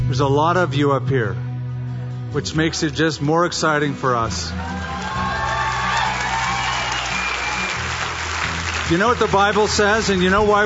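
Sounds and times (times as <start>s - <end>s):
speech: 0.1s - 1.4s, 2.3s - 4.9s, 8.9s - 10.6s
scattered whoops and shouts: 4.5s - 7.9s
audience clapping and cheering: 4.6s - 10.6s.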